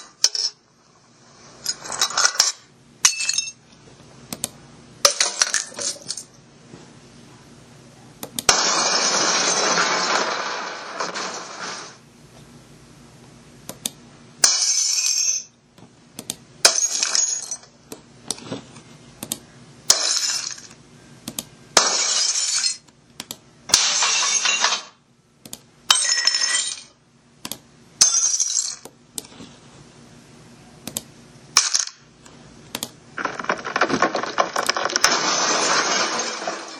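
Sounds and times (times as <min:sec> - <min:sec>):
glass breaking: 0:01.8 - 0:03.6, 0:05.0 - 0:06.3, 0:08.5 - 0:11.9, 0:14.4 - 0:15.5, 0:16.6 - 0:17.7, 0:19.9 - 0:20.8, 0:21.8 - 0:22.8, 0:23.7 - 0:25.0, 0:25.9 - 0:27.0, 0:28.0 - 0:28.8, 0:31.6 - 0:32.0, 0:33.2 - 0:36.7.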